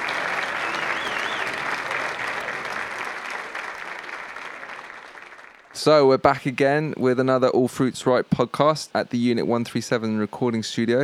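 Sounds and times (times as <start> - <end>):
audience applause: 0.0 - 6.0
speech: 5.8 - 11.0.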